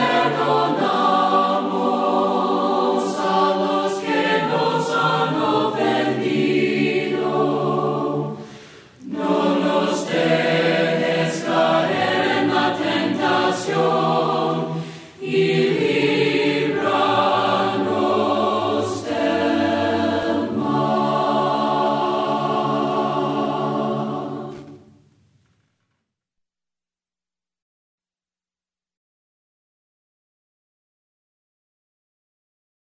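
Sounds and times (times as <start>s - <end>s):
voices singing a cappella hymn: 0.0s - 24.9s.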